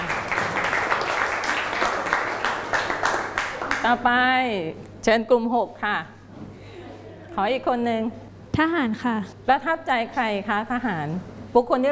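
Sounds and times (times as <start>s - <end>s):
classroom applause: 0.0s - 3.9s
speech: 3.8s - 6.2s, 7.4s - 11.8s.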